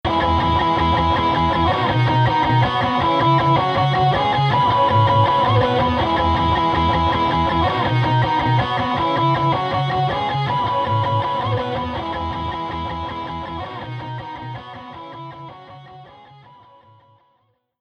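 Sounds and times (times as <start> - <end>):
stacked power punk pop music: 0.0 - 16.6.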